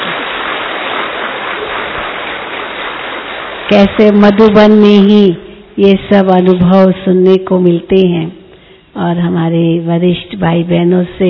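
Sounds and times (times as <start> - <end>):
audience clapping loudly: 0.0 - 4.4
speech: 3.7 - 8.4, 9.0 - 11.2.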